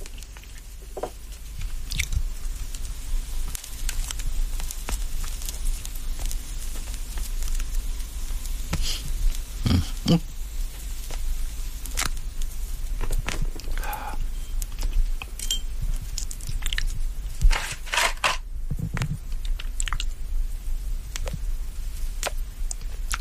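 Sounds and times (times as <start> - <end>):
dry crackles and clicks: 0.0 - 23.1
low hiss: 0.0 - 23.1
match struck and flaring: 1.4 - 13.8, 16.0 - 18.5, 21.1 - 23.1.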